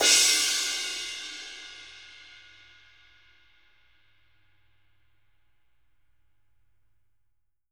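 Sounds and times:
dark crash cymbal: 0.0s - 3.9s.

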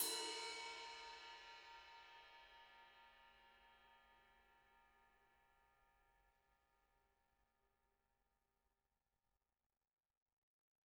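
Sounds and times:
ride cymbals: 0.0s - 1.6s.

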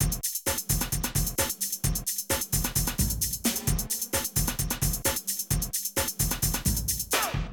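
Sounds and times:
rave and hardcore drum loops: 0.0s - 7.5s.

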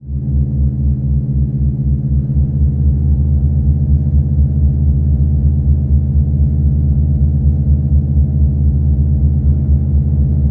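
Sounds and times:
pipe cluster drone: 0.0s - 10.4s.

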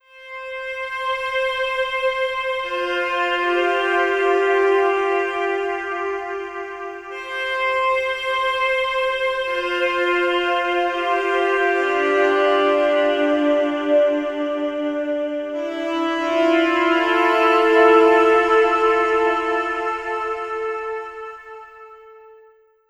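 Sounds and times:
saxophone: 0.0s - 22.7s.

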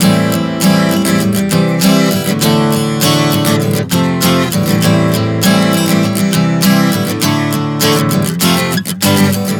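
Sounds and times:
acoustic guitar chord progression Am-C-D-F F-G at 100 bpm: 0.0s - 9.5s.

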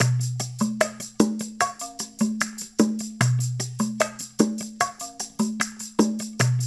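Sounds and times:
percussion loop: 0.0s - 6.6s.

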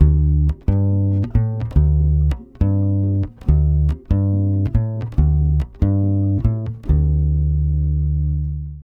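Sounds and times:
Brazil bossa nova bass: 0.0s - 8.8s.

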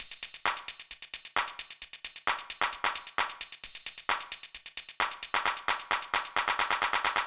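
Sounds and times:
old school house beat at 132 BPM: 0.0s - 7.2s.

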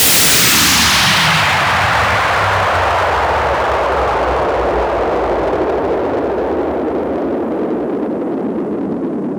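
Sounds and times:
downward sweeps: 0.0s - 9.2s.

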